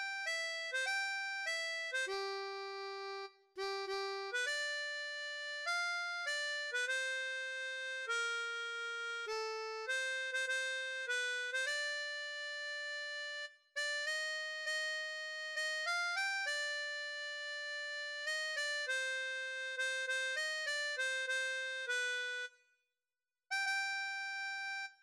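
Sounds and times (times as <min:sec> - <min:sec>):
harmonica melody: 0:00.0 - 0:22.6, 0:23.5 - 0:25.0.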